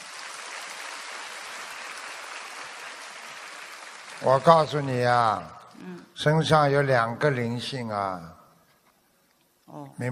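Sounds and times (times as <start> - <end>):
applause: 0.0 - 5.3
speech: 4.2 - 8.4, 9.7 - 10.1.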